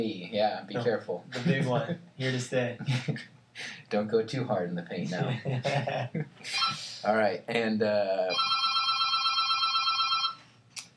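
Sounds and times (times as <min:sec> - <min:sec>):
speech: 0:00.0 - 0:08.6
telephone ringing with an incoming call, bright warbling electronic ring: 0:08.3 - 0:10.5.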